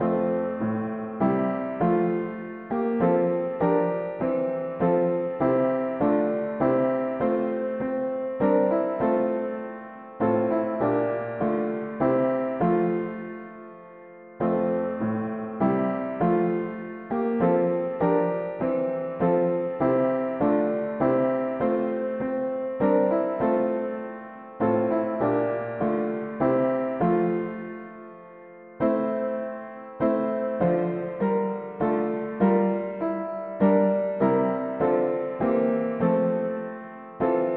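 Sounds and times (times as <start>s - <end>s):
mono piano playing hymns: 0.0s - 37.5s.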